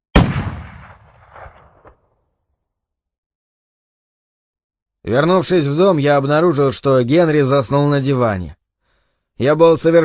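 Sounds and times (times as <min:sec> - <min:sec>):
single gunshot: 0:00.1 - 0:02.2
speech: 0:05.0 - 0:08.6, 0:09.4 - 0:10.0.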